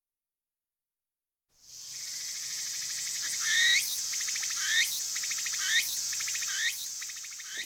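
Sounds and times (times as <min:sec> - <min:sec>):
cricket chirping: 0:01.7 - 0:07.6.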